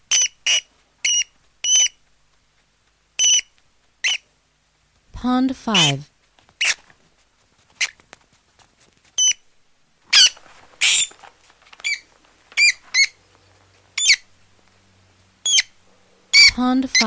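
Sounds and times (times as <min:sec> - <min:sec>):
rat squeaking: 0:00.0 - 0:02.0, 0:03.2 - 0:04.3, 0:05.8 - 0:06.9, 0:09.2 - 0:09.4, 0:10.1 - 0:13.3, 0:13.9 - 0:14.3, 0:15.4 - 0:17.0
speech: 0:05.2 - 0:06.1.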